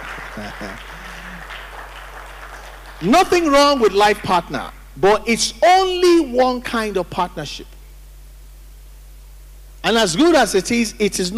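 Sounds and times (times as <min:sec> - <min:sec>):
audience clapping: 0:00.0 - 0:04.8
speech: 0:00.4 - 0:01.1, 0:03.0 - 0:07.7, 0:09.9 - 0:11.3.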